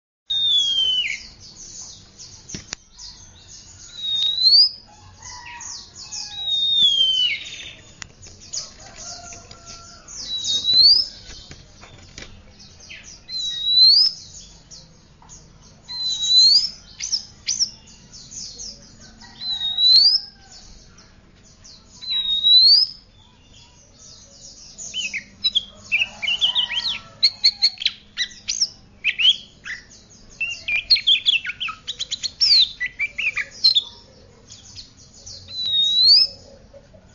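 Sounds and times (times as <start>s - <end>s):
Oriental magpie-robin whistling: 0.3s - 1.3s, 3.9s - 4.8s, 6.2s - 7.9s, 10.2s - 11.2s, 13.3s - 14.2s, 15.9s - 17.8s, 22.0s - 23.0s, 26.3s - 33.8s, 35.5s - 36.4s.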